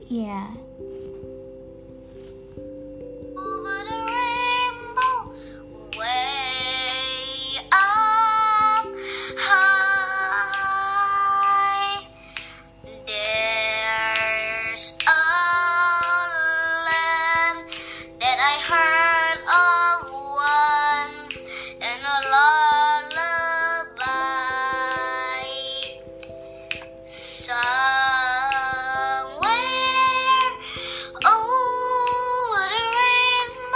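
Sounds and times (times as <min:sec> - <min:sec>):
speech: 0:00.1 - 0:00.7
child singing a slow melodic song: 0:03.4 - 0:12.1, 0:13.0 - 0:26.0, 0:27.1 - 0:33.7.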